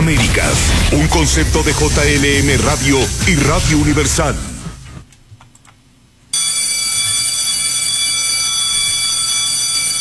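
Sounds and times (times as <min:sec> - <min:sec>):
speech: 0:00.1 - 0:04.5
school bell ringing: 0:06.4 - 0:09.9.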